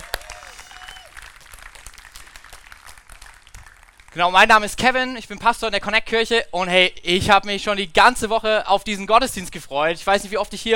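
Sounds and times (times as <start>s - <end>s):
audience applause: 0.0s - 4.2s
speech: 4.1s - 10.7s.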